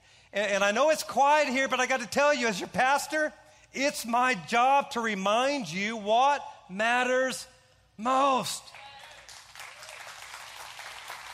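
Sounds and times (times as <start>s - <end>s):
speech: 0.3s - 8.8s
hand claps: 9.0s - 11.3s.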